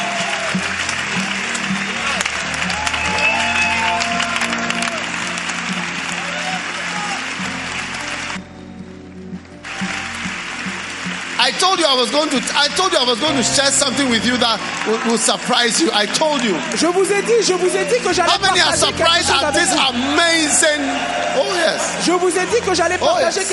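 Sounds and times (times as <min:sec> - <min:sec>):
scattered voices and cheers: 0:00.0 - 0:08.4, 0:09.6 - 0:23.5
audience clapping: 0:00.0 - 0:08.8, 0:09.4 - 0:23.5
speech: 0:00.6 - 0:00.8, 0:11.9 - 0:23.5.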